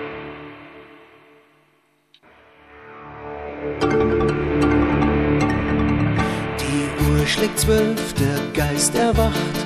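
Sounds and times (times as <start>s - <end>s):
song: 2.7s - 9.6s.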